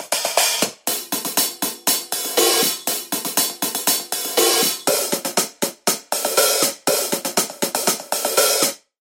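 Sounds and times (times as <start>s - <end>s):
studio hi-hats: 0.0s - 8.8s.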